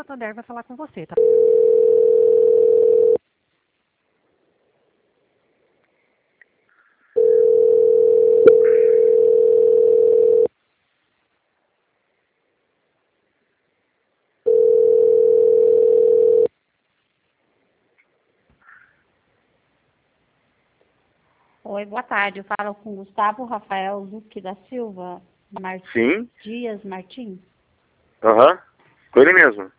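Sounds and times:
speech: 0:00.0 - 0:02.9, 0:21.8 - 0:27.5, 0:28.2 - 0:29.7
telephone tone while a call is transferred: 0:01.2 - 0:03.2, 0:07.2 - 0:10.5, 0:14.5 - 0:16.5.

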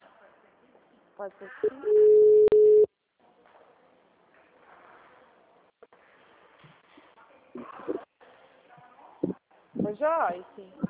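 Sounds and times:
speech: 0:01.2 - 0:02.5, 0:10.0 - 0:10.8
telephone line tone after a dropped call: 0:01.6 - 0:02.9.

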